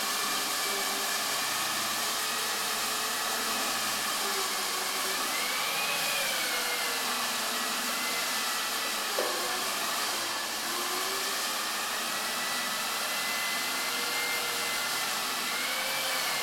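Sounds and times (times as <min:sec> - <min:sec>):
core drill boring into concrete wall for seismic survey: 0:00.0 - 0:16.4.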